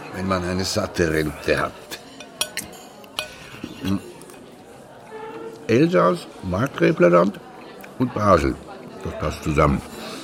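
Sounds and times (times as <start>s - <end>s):
speech: 0.2s - 1.9s, 3.8s - 4.1s, 5.7s - 9.9s
dishes and cutlery clinking as plates of cold roast are served: 1.1s - 5.5s.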